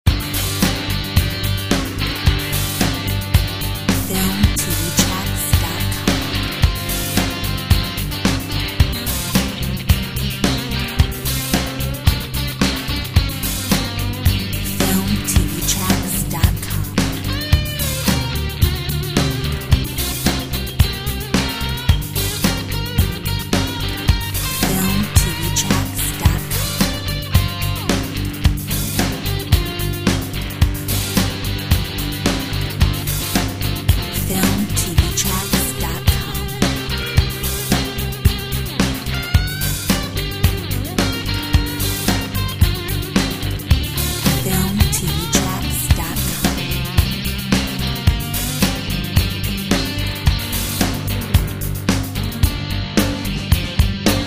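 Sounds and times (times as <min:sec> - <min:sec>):
blues music: 0:00.0 - 0:54.2.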